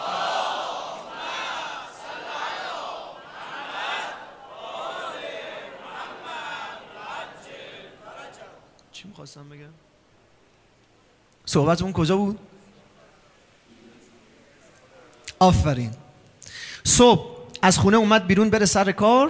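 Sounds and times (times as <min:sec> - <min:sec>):
crowd chanting at a religious gathering: 0:00.0 - 0:08.8
speech: 0:09.0 - 0:09.9, 0:11.5 - 0:12.6, 0:15.4 - 0:16.0, 0:17.0 - 0:19.2.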